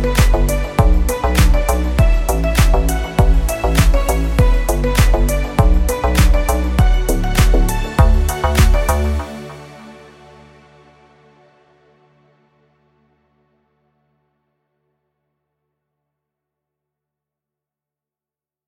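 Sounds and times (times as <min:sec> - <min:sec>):
full drum kit loop in G: 0:00.0 - 0:09.2.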